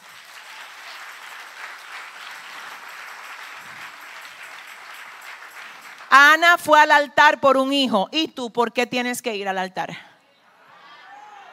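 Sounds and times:
audience applause: 0:00.0 - 0:06.2
speech: 0:06.1 - 0:10.1.

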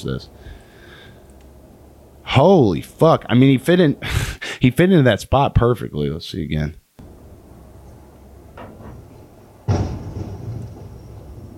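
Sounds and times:
speech: 0:00.0 - 0:00.6, 0:02.3 - 0:06.8
car crash impact: 0:08.6 - 0:11.5.

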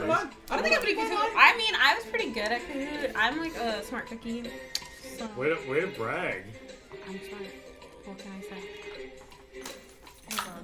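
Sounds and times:
speech: 0:00.1 - 0:08.8
keys being dropped: 0:09.6 - 0:10.6.

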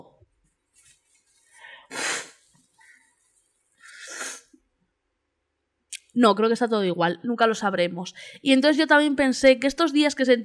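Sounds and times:
nose blowing: 0:01.9 - 0:02.5, 0:03.8 - 0:04.6
speech: 0:06.2 - 0:10.4.

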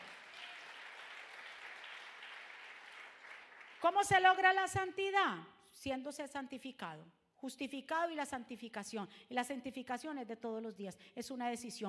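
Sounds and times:
audience applause: 0:00.0 - 0:03.8
speech: 0:03.8 - 0:11.8.

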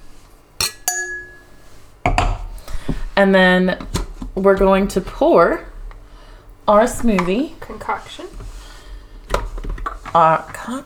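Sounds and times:
drinking glasses clinking together as they're handled: 0:00.6 - 0:01.6
speech: 0:03.2 - 0:05.7, 0:06.7 - 0:08.4, 0:10.1 - 0:10.8.

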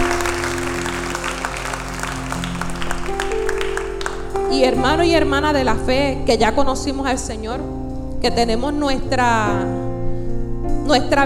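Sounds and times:
audience applauding loudly: 0:00.0 - 0:04.5
speech: 0:04.6 - 0:09.8, 0:10.9 - 0:11.2.

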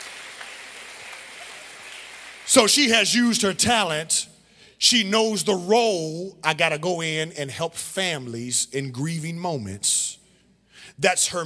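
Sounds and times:
audience applauding: 0:00.0 - 0:02.8
speech: 0:02.5 - 0:10.2, 0:11.0 - 0:11.4.

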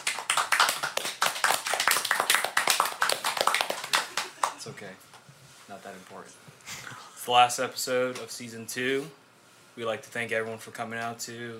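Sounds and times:
applause, hands clapping: 0:00.0 - 0:04.6
speech: 0:04.8 - 0:05.1, 0:05.7 - 0:09.2, 0:09.8 - 0:11.5.

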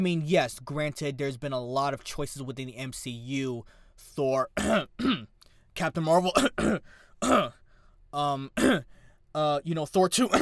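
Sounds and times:
speech: 0:00.0 - 0:10.3
throat clearing from something stuck in the throat: 0:04.6 - 0:05.4, 0:06.4 - 0:07.6, 0:08.6 - 0:08.9.

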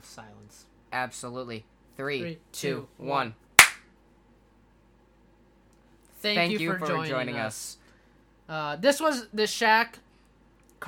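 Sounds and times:
speech: 0:00.2 - 0:03.4, 0:06.2 - 0:07.8, 0:08.5 - 0:10.0
people clapping: 0:03.6 - 0:03.8.

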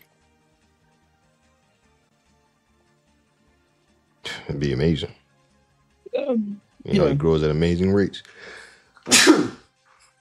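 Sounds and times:
speech: 0:04.5 - 0:05.2, 0:06.3 - 0:09.6
loud sneeze: 0:09.0 - 0:09.7.

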